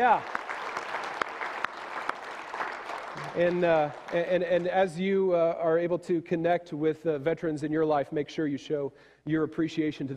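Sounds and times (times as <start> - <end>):
speech: 0.0 - 0.4, 3.2 - 10.1
audience applause: 0.0 - 4.8.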